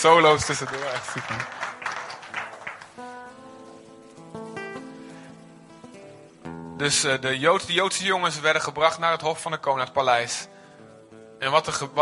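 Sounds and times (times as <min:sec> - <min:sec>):
speech: 0:00.0 - 0:01.7, 0:06.8 - 0:10.5, 0:11.4 - 0:12.0
audience applause: 0:00.0 - 0:03.2.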